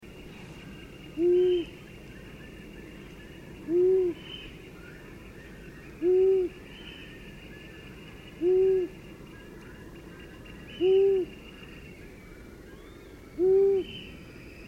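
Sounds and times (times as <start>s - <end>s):
long-eared owl hooting: 1.1s - 1.8s, 3.6s - 4.5s, 6.0s - 6.6s, 8.4s - 9.0s, 10.7s - 11.5s, 12.7s - 14.1s.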